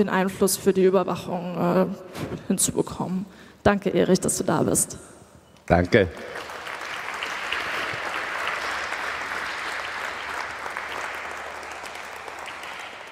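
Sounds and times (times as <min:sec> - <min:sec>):
speech: 0:00.0 - 0:06.5
audience clapping: 0:05.7 - 0:13.1.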